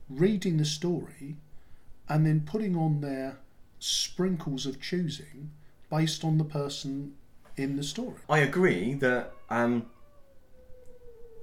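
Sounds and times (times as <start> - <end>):
speech: 0.1 - 1.5, 2.1 - 9.9
cat moaning: 8.3 - 11.4.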